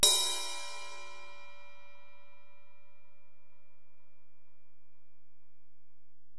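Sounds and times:
Alesis DM-PRO drum machine ride cymbal: 0.0s - 1.9s.

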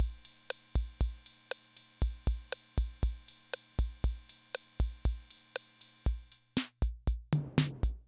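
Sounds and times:
classic drum machine rhythm loop: 0.0s - 8.0s.

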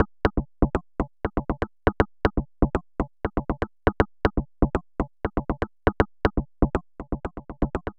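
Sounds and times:
simple electronic bongo beat: 0.0s - 7.9s.

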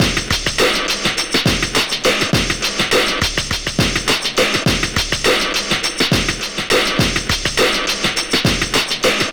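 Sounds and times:
distorted warehouse drum loop: 0.0s - 9.3s.

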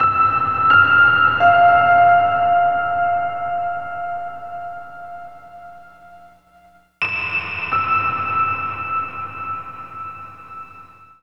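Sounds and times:
piano: 0.0s - 11.2s.

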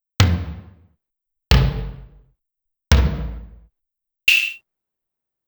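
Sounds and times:
Clavia DDrum AT electronic drum pitched down: 0.2s - 0.8s, 1.5s - 2.2s, 2.9s - 3.7s, 4.3s - 4.6s.

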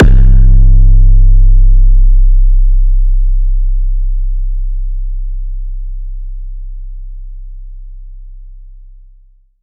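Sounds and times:
booming kick drums: 0.0s - 4.6s.

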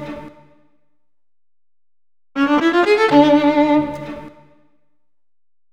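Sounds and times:
viola loop: 2.4s - 3.7s.

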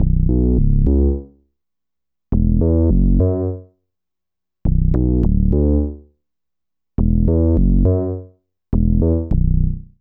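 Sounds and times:
bass: 0.0s - 1.5s, 2.3s - 3.7s, 4.6s - 6.1s, 7.0s - 9.9s.

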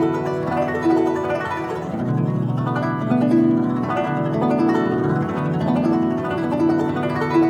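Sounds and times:
traditional guzheng playing: 0.0s - 7.4s.

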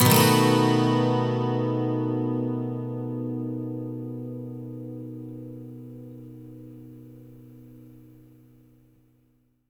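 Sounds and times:
12-string electric guitar loop in B major: 0.0s - 7.5s
12-string acoustic guitar loop in B major: 0.0s - 8.6s.

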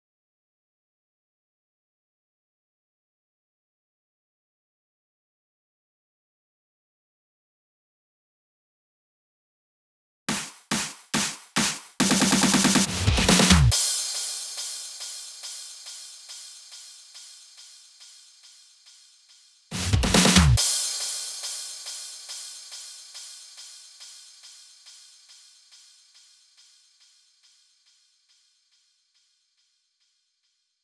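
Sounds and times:
140 BPM drum fills: 10.3s - 18.2s, 19.7s - 24.6s.

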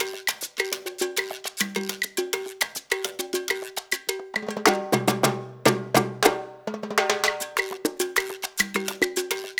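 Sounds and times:
percussion loop: 0.0s - 9.5s.

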